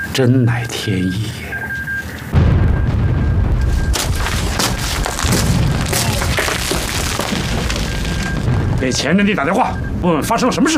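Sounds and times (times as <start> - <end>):
speech: 0.2 - 1.6, 8.8 - 10.7
explosion: 2.4 - 10.5.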